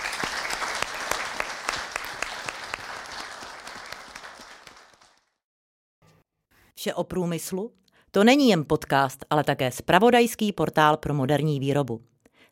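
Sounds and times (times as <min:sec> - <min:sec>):
audience applause for panelists: 0:00.0 - 0:05.4
speech: 0:06.8 - 0:12.5.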